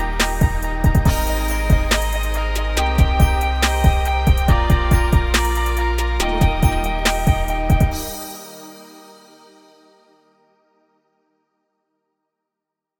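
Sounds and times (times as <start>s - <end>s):
motivational hip hop music: 0.0s - 10.0s.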